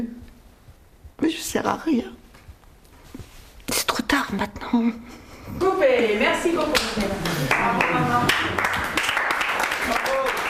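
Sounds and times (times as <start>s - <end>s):
speech: 1.2s - 2.2s, 4.1s - 8.8s
audience applause after a monologue: 7.2s - 10.4s.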